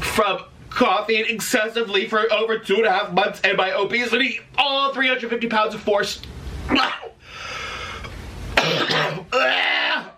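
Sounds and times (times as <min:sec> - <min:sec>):
speech: 0:00.2 - 0:07.1, 0:08.8 - 0:09.8
CPAP machine running over nose: 0:07.2 - 0:08.3.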